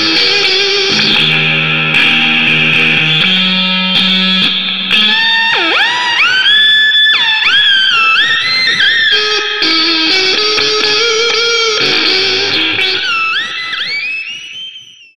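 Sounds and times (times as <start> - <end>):
KORG guitar synthesizer: 0.0 - 15.1.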